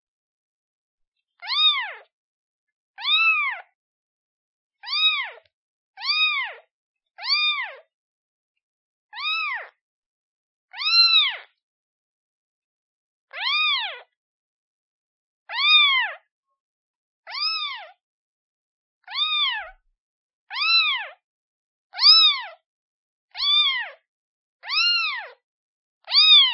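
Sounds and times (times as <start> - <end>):
kitten meowing calling for its mother: 1.4 - 2.1, 3.0 - 3.7, 4.8 - 6.6, 7.2 - 7.8, 9.2 - 9.8, 10.7 - 11.5, 13.4 - 14.1, 15.5 - 16.2, 17.3 - 18.0, 19.0 - 19.8, 20.5 - 21.2, 22.0 - 22.6, 23.4 - 24.0, 24.6 - 25.4, 26.0 - 26.5.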